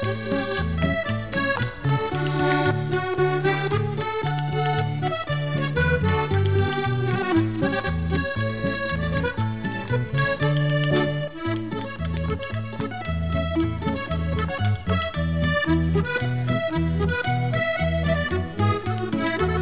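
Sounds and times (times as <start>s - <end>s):
polka music: 0.0s - 19.6s.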